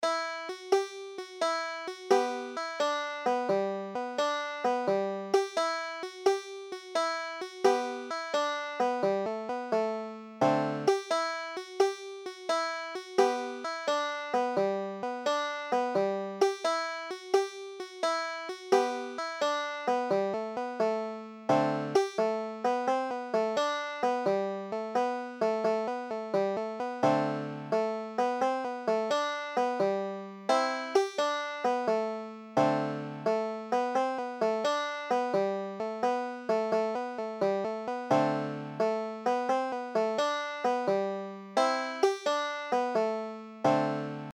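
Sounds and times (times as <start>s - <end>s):
banjo: 0.0s - 44.3s.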